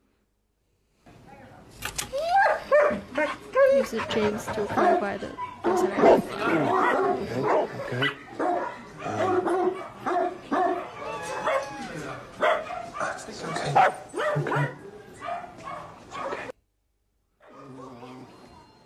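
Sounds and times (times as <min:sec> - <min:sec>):
dogs barking and yipping: 0:02.1 - 0:16.5
speech: 0:03.2 - 0:08.2.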